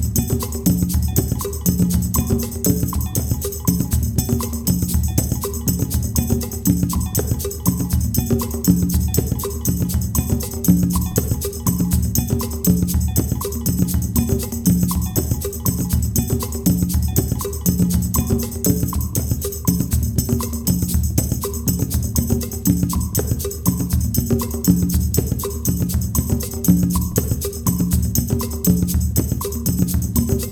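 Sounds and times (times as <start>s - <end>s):
kpanlogo percussion: 0.0s - 30.4s.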